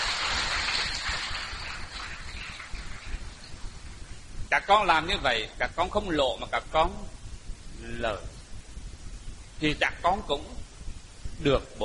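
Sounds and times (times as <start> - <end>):
crowd applause: 0.0 - 3.4
speech: 4.5 - 7.2, 7.8 - 8.3, 9.6 - 10.6, 11.4 - 11.8.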